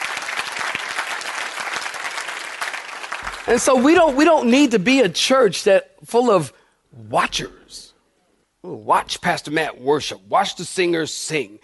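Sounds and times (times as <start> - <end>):
audience clapping hands: 0.0 - 4.3
speech: 3.4 - 7.9, 8.6 - 11.6.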